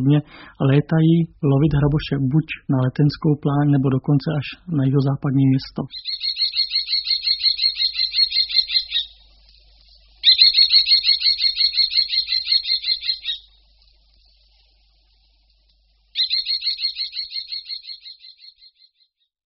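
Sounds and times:
speech: 0.0 - 6.4
common kestrel shrill kee calls: 5.9 - 9.2, 10.2 - 13.6, 16.1 - 18.9.

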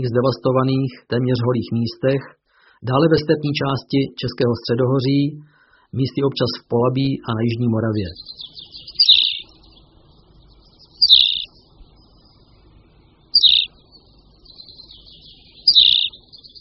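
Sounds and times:
speech: 0.0 - 8.5
tawny pipit chirping: 7.9 - 16.5.

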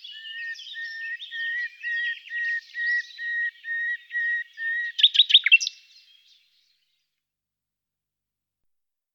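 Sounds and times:
common nightingale singing: 0.0 - 6.5.

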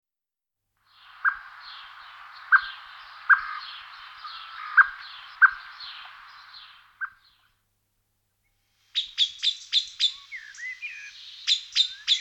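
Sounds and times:
Common blackbird warbling song: 0.9 - 7.6, 8.9 - 12.1.

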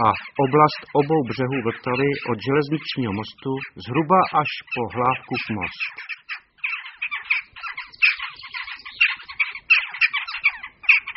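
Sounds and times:
speech: 0.0 - 6.2
flock of jackdaws calling: 0.0 - 11.1.

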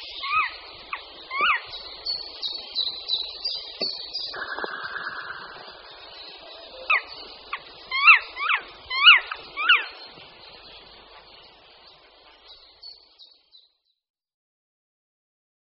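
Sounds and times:
black woodpecker calling: 0.2 - 10.0.

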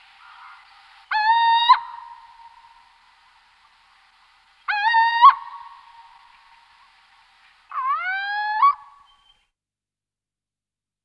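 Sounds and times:
Athene noctua little owl calling: 0.2 - 2.9, 4.6 - 6.9, 7.7 - 9.4.

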